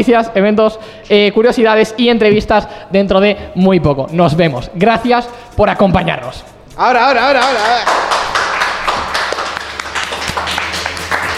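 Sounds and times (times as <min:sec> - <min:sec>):
speech: 0:00.0 - 0:08.0
applause: 0:07.3 - 0:11.3.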